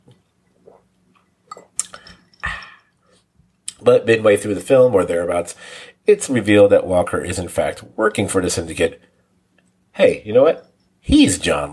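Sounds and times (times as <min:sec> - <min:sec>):
sipping a drink: 0:00.4 - 0:03.0
speech: 0:03.8 - 0:09.1, 0:10.0 - 0:11.7.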